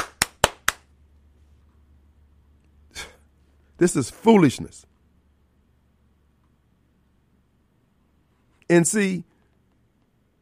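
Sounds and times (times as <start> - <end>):
hand claps: 0.0 - 0.9
speech: 3.8 - 4.9, 8.7 - 9.4.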